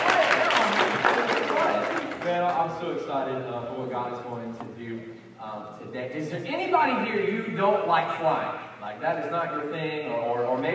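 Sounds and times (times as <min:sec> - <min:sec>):
people cheering: 0:00.0 - 0:02.5
crowd clapping: 0:00.0 - 0:02.8
speech: 0:02.4 - 0:10.7.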